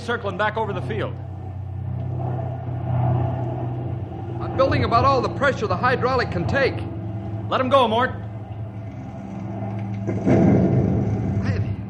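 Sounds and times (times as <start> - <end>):
speech: 0.0 - 1.3, 4.6 - 6.9, 7.5 - 8.2, 10.1 - 10.6
rushing roar: 0.0 - 11.8
steady low aircraft engine drone: 0.0 - 11.8.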